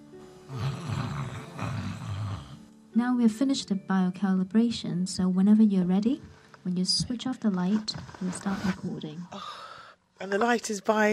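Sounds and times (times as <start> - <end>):
person making snoring noise on request: 0.4 - 2.7
speech: 3.0 - 11.1.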